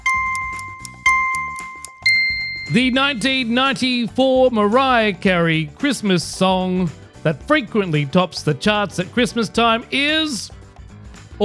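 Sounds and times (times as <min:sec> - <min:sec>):
beeps: 0:00.0 - 0:03.5
speech: 0:02.7 - 0:10.6.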